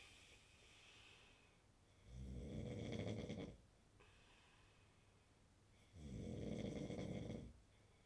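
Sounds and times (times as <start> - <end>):
man snoring: 2.1 - 3.5, 6.0 - 7.5.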